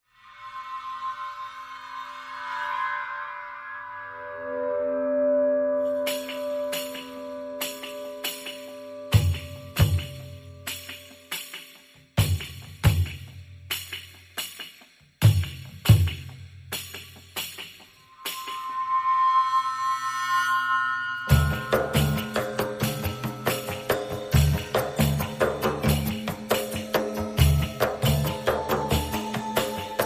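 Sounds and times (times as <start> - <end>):
synth pads: 1.2 - 10.8, 18.0 - 30.0
percussion: 5.8 - 30.0.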